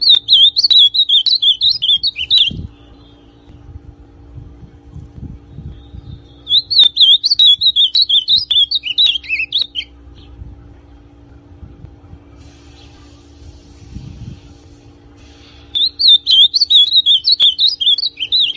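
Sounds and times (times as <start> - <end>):
ultramarine grosbeak song: 0.0 - 3.7, 5.5 - 10.4, 15.4 - 18.5.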